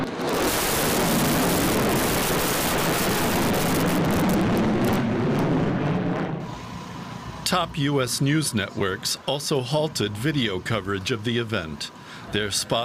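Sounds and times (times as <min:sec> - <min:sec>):
bomber aircraft flyover during a ceremony: 0:00.0 - 0:06.6
speech: 0:07.5 - 0:12.8.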